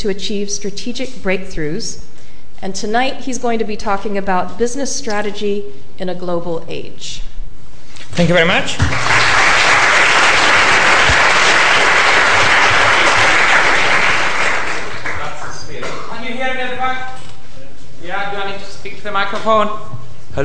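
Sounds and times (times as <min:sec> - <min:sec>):
speech: 0:00.0 - 0:07.3, 0:08.1 - 0:09.4, 0:18.9 - 0:20.4
audience applause: 0:08.7 - 0:15.5.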